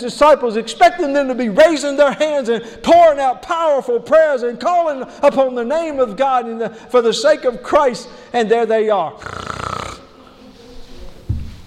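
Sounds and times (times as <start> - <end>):
speech: 0.0 - 9.6
voice imitating loud snoring: 9.2 - 10.2.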